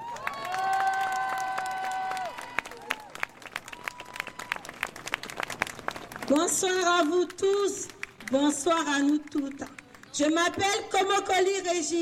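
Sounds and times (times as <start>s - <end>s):
thunderous applause from an audience: 0.0s - 6.4s
speech: 6.3s - 12.0s.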